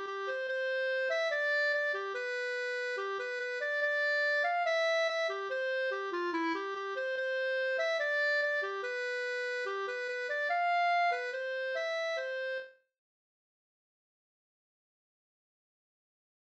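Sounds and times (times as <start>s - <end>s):
reinlender folk dance tune in G major: 0.0s - 12.7s.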